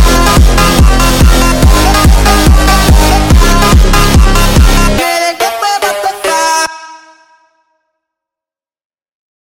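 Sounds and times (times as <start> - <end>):
sped up funk music: 0.0 - 6.8.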